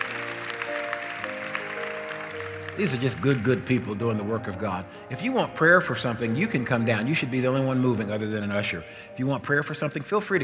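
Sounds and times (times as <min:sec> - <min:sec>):
congregation applauding ushers, prayer workers and parking lot attendants at a church service: 0:00.0 - 0:04.6
sustained keyboard-like music tones: 0:00.0 - 0:10.4
speech: 0:02.8 - 0:10.4.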